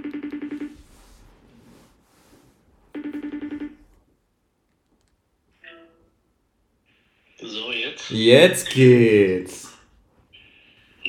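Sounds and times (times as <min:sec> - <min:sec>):
telephone ringing tone during a call: 0:02.9 - 0:03.8
speech: 0:08.1 - 0:09.7.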